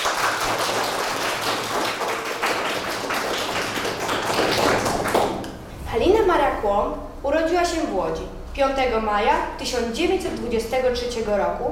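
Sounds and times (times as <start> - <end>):
audience applause: 0.0 - 5.4
speech: 6.0 - 11.7.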